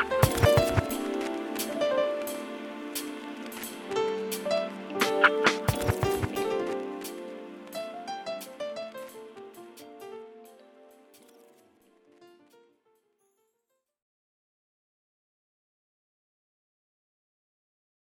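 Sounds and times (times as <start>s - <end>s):
neo soul urban jazz music: 0.0s - 11.1s.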